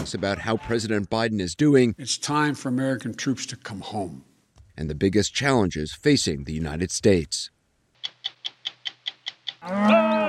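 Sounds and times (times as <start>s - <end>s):
speech: 0.1s - 7.6s, 9.6s - 10.2s
sharp clicking pulses: 8.0s - 9.6s
cow mooing during a spring cattle drive on a Wyoming ranch route: 9.6s - 10.2s.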